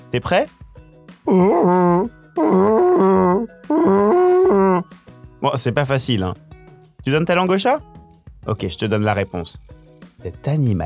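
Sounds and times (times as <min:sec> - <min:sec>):
speech: 0:00.1 - 0:00.6, 0:01.2 - 0:06.4, 0:07.1 - 0:10.8
voice imitating a beaver: 0:01.3 - 0:04.9.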